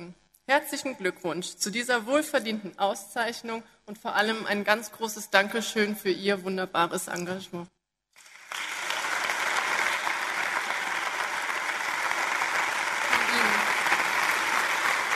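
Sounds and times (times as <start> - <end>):
speech: 0.5 - 7.8
audience applause: 8.2 - 15.1.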